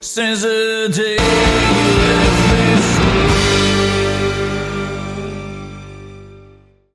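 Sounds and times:
radio bumper jingle: 0:01.2 - 0:06.4.

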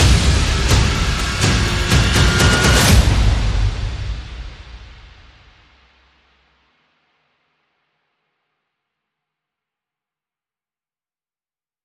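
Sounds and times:
sound effects: 0:00.0 - 0:05.2
percussion: 0:00.0 - 0:07.5.

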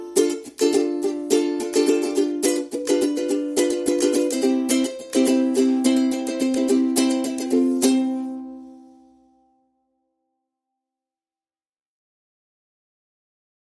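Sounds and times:
ukulele: 0:00.0 - 0:09.6.

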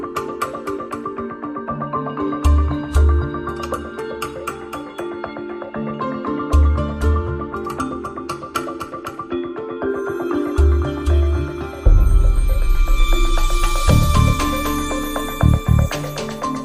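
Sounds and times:
percussion: 0:00.0 - 0:16.6
pulses: 0:10.6 - 0:16.6.

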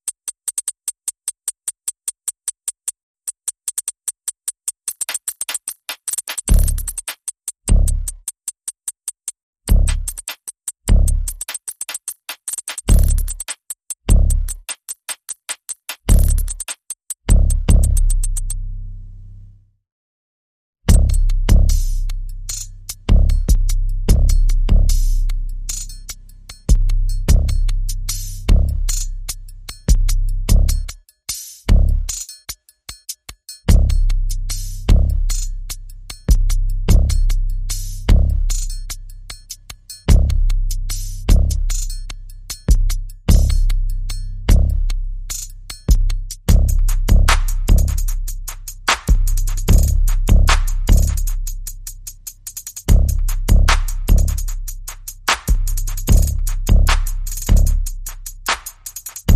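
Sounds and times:
percussion: 0:00.0 - 0:18.6, 0:20.8 - 0:59.3
bass: 0:06.5 - 0:07.0, 0:07.7 - 0:08.2, 0:09.7 - 0:10.2, 0:10.9 - 0:11.4, 0:12.9 - 0:13.4, 0:14.1 - 0:14.6, 0:16.1 - 0:16.6, 0:17.2 - 0:19.8, 0:20.8 - 0:32.3, 0:33.7 - 0:59.3.

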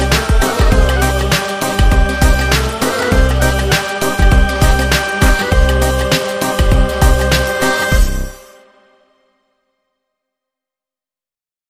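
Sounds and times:
modern remix music: 0:00.0 - 0:09.2.

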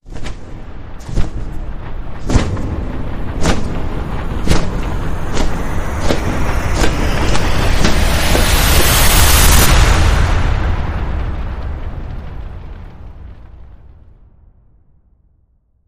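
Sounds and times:
rising riser effect: 0:01.0 - 0:11.4.

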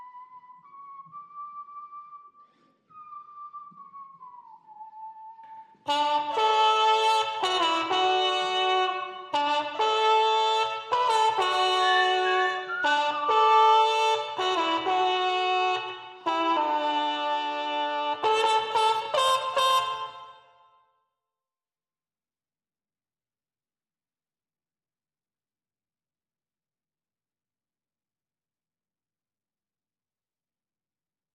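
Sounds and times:
trumpets: 0:05.8 - 0:20.8.

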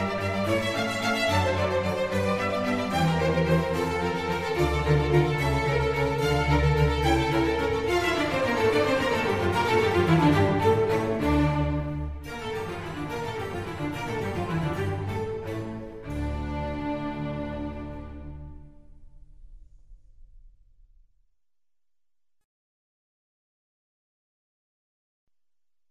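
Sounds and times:
string concerto in D minor: 0:00.0 - 0:18.9.

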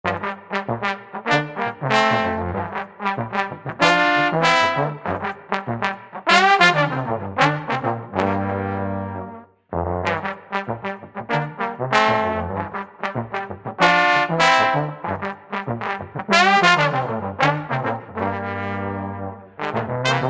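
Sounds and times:
Bavarian funk brass: 0:00.0 - 0:20.2.

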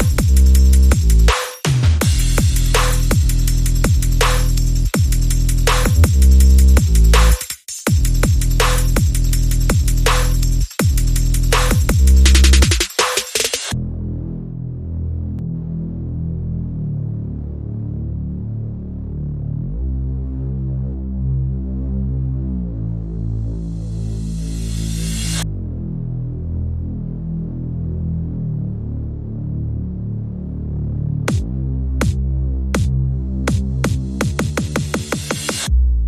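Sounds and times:
drums: 0:00.0 - 0:13.8, 0:33.5 - 0:35.8
bass: 0:00.0 - 0:36.0.

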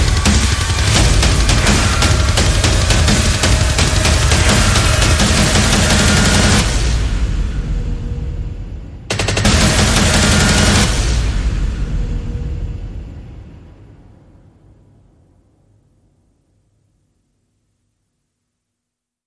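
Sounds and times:
percussion: 0:00.0 - 0:13.7
sound effects: 0:00.0 - 0:14.2.

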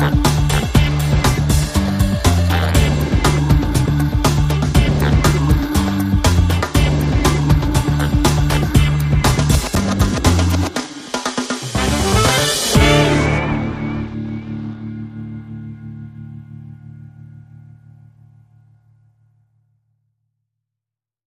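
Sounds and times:
funky groove without melody: 0:00.0 - 0:13.5.

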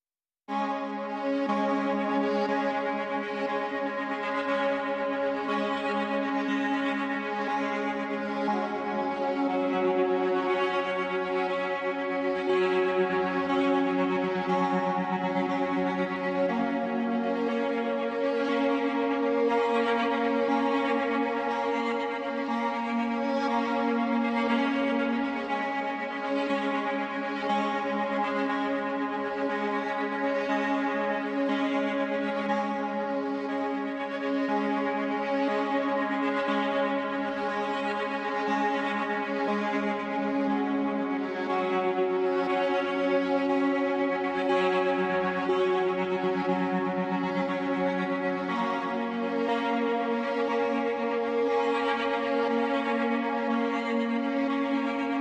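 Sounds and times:
strings: 0:00.5 - 0:55.1.

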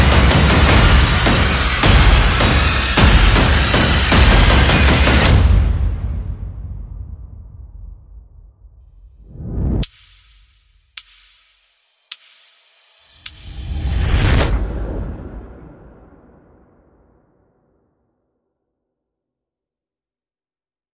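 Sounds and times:
percussion: 0:00.0 - 0:06.6, 0:09.2 - 0:14.6.

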